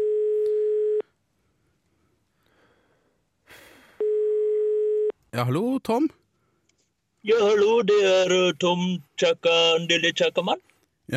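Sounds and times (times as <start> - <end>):
telephone ringback tone: 0.0 - 1.0, 4.0 - 5.1
speech: 5.3 - 6.2, 7.2 - 11.1.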